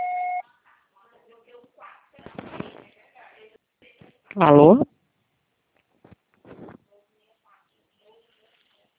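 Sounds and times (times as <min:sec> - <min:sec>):
answering machine beep: 0:00.0 - 0:00.4
speech: 0:04.4 - 0:04.9.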